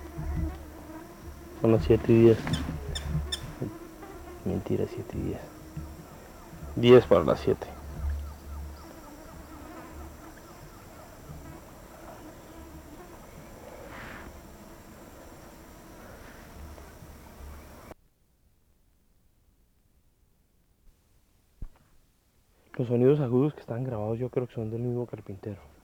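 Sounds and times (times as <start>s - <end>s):
bumblebees buzzing at their nest: 0.0s - 18.0s
speech: 1.6s - 2.8s, 4.5s - 5.6s, 6.8s - 7.8s, 22.9s - 25.8s.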